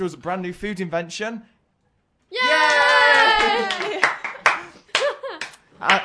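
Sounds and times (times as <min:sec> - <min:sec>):
speech: 0:00.0 - 0:01.5, 0:03.4 - 0:04.2, 0:05.8 - 0:06.0
hands clapping close to the microphone: 0:02.6 - 0:06.0.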